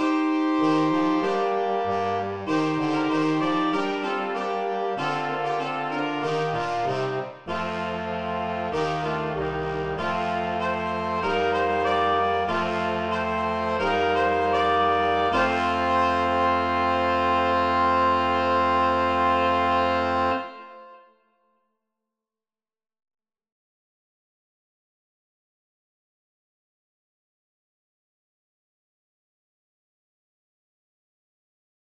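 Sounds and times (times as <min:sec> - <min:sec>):
brass quintet playing a processional: 0:00.0 - 0:21.2.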